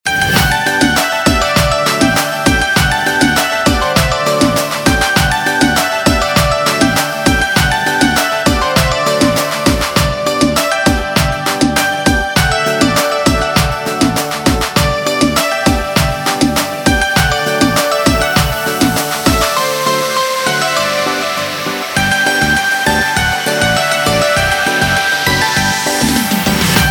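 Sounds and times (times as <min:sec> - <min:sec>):
instrumental ringtone: 0:00.1 - 0:26.8.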